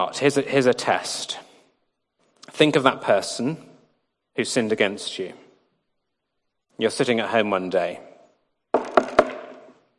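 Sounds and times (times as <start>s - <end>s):
speech: 0.0s - 1.4s, 2.5s - 3.7s, 4.4s - 5.4s, 6.8s - 8.1s
knocking on a door: 8.8s - 9.7s.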